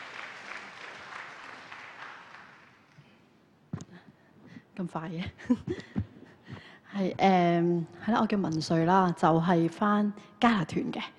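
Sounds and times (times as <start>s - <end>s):
audience applause: 0.0s - 2.8s
speech: 4.8s - 6.0s, 7.0s - 11.1s.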